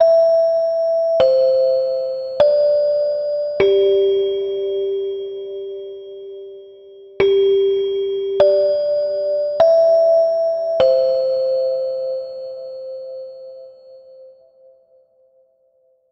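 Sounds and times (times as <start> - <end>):
chime: 0.0 - 15.5.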